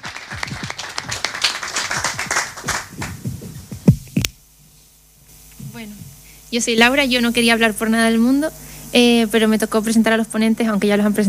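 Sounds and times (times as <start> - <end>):
audience applause: 0.0 - 3.7
speech: 5.8 - 11.2.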